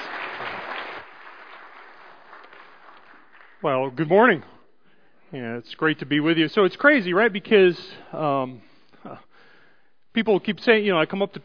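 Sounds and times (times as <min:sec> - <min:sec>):
audience applauding to welcome a speaker to the stage: 0:00.0 - 0:04.0
speech: 0:03.6 - 0:04.6, 0:05.3 - 0:09.3, 0:10.1 - 0:11.4.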